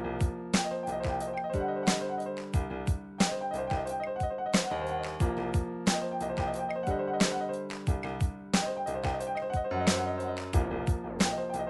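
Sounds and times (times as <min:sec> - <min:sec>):
MIDI trip-hop arpeggio: 0:00.2 - 0:11.6.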